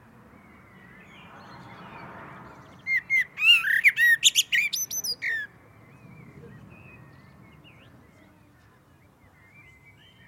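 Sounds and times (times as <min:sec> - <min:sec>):
common blackbird singing: 0:00.3 - 0:10.2.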